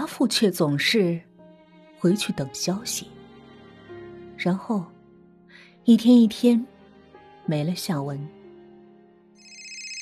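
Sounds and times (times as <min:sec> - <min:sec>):
speech: 0:00.2 - 0:01.3, 0:02.0 - 0:03.2, 0:04.4 - 0:04.9, 0:05.8 - 0:06.7, 0:07.5 - 0:08.4
phone ringtone ringing from a handbag: 0:09.4 - 0:10.0.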